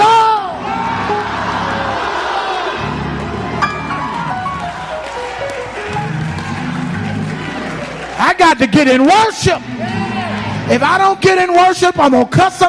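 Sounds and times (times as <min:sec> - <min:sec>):
audience hollering: 0:00.0 - 0:08.2
speech: 0:08.6 - 0:10.1, 0:10.7 - 0:12.6.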